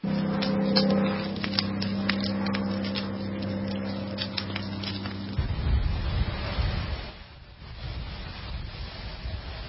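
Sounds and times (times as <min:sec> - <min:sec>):
low droning hum: 0:00.0 - 0:07.2
wildfire crackling: 0:00.0 - 0:09.6
wind rushing: 0:05.4 - 0:09.6.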